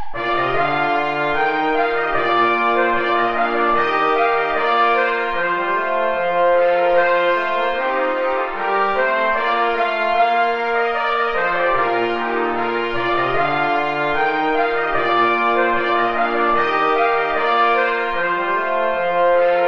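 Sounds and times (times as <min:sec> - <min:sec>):
ballet music without trombone: 0:00.2 - 0:19.6.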